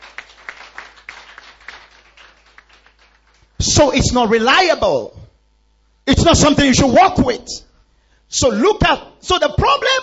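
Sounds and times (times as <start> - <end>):
audience clapping: 0.0 - 3.6
speech: 3.7 - 5.2, 6.1 - 7.7, 8.3 - 10.0.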